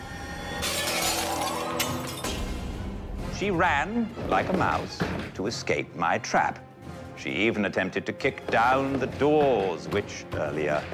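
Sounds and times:
shards clattering and tinkling: 0.6 - 2.4
ceramic cereal bowl shattering on a hard floor: 0.6 - 2.6
speech: 3.4 - 10.9.

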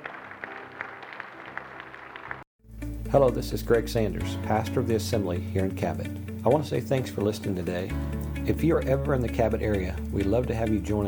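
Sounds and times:
audience applauding: 0.0 - 2.4
speech: 3.1 - 11.0.

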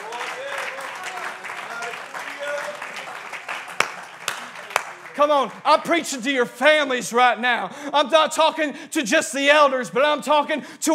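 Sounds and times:
audience clapping: 0.0 - 6.0
speech: 5.2 - 10.9.

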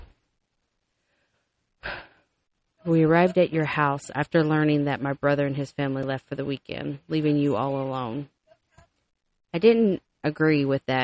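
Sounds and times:
deep breaths taken before speaking: 0.9 - 2.4
speech: 2.8 - 8.4, 9.5 - 11.0.

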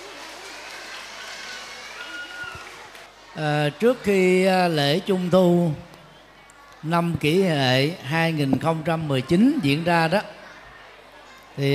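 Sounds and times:
large group of children clapping loudly: 0.0 - 3.4
faint murmur of voices: 0.0 - 11.7
speech: 3.4 - 5.9, 6.8 - 10.4, 11.6 - 11.7.

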